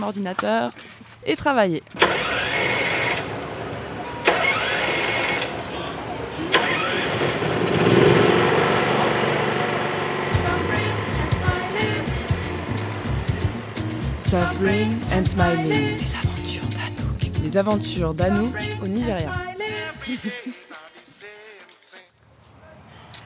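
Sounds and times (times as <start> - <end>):
speech: 0.0 - 2.4, 14.3 - 16.3, 17.5 - 19.5
generator running: 1.9 - 20.3
laughter: 18.6 - 21.2.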